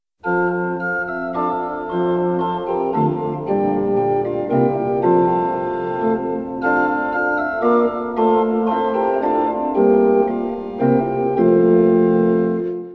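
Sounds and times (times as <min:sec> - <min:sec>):
organ: 0:00.2 - 0:12.9.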